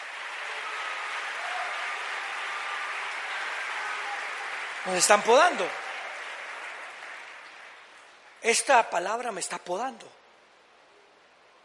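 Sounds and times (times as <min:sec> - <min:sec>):
loud applause from audience: 0:00.0 - 0:08.8
speech: 0:04.8 - 0:05.8, 0:08.4 - 0:10.2.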